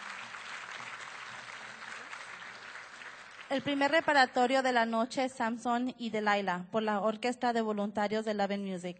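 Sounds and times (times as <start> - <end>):
concert audience applause: 0.0 - 4.4
speech: 3.5 - 8.9.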